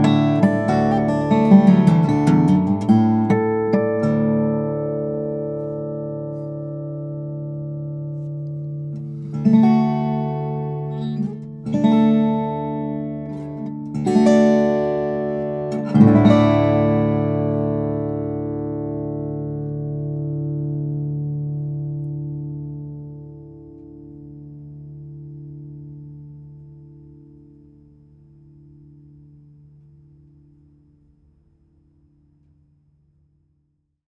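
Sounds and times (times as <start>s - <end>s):
steel string flattop guitar of African blackwood and alpine moonspruce: 0.0s - 30.9s.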